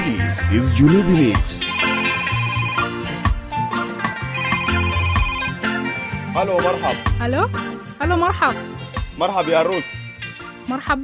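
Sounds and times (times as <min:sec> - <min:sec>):
speech: 0:00.1 - 0:01.6, 0:06.4 - 0:10.0, 0:10.7 - 0:11.0
electronic telephone ringtone for incoming call to a radio call-in show: 0:01.6 - 0:03.2, 0:04.2 - 0:05.9.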